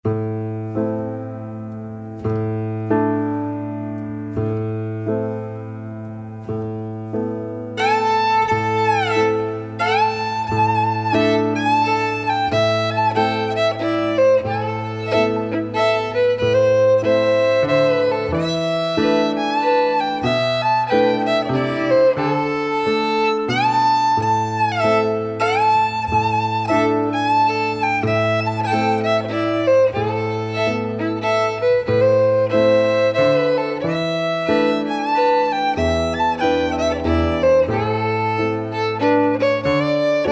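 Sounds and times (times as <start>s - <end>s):
waltz music: 0.1s - 40.3s.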